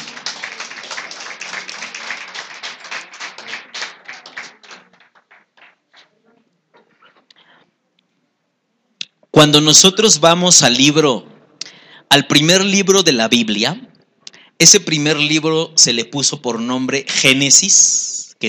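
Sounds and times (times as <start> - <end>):
audience hand clapping: 0.0 - 6.2
speech: 9.4 - 11.3, 12.1 - 13.9, 14.6 - 18.4.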